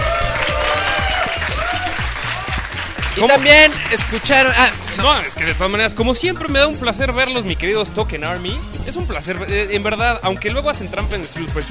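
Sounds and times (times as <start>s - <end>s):
crowd applause: 0.0s - 5.6s
speech: 3.2s - 11.7s.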